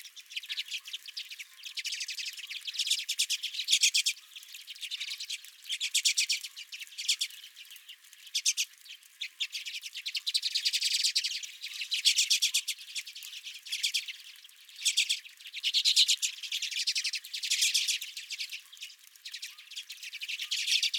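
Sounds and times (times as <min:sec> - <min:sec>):
redpolls chattering: 0:00.0 - 0:20.9.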